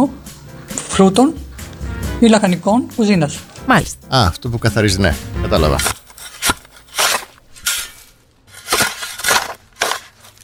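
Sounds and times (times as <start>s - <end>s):
speech: 1.0s - 1.4s, 2.2s - 6.0s
shovel digging and tossing soil: 5.1s - 10.4s.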